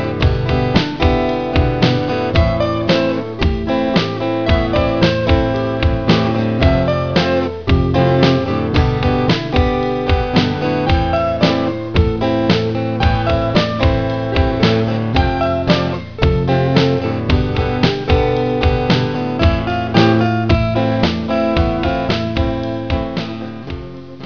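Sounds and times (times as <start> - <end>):
lead guitar: 0.0 - 24.2.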